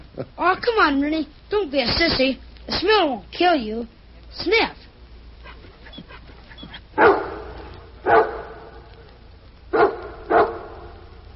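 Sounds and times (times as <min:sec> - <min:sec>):
speech: 0:00.2 - 0:04.9
dog barking: 0:05.5 - 0:08.8, 0:09.7 - 0:11.0.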